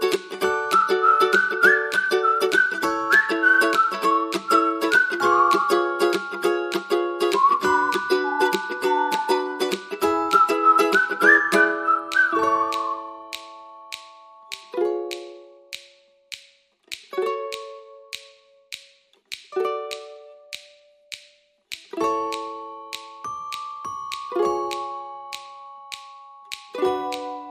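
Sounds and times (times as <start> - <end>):
ukulele: 0.0 - 27.4
whistling: 0.4 - 13.6.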